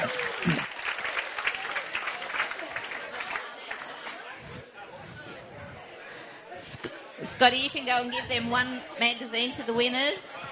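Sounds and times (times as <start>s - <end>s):
audience applause for quiz winners: 0.0s - 4.5s
speech: 7.4s - 10.3s.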